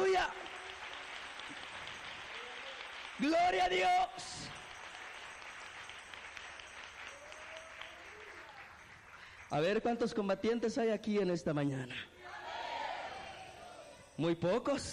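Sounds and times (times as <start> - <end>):
audience applauding: 0.0 - 10.0
speech: 0.2 - 0.6, 3.2 - 4.6, 9.5 - 12.2, 14.2 - 14.9.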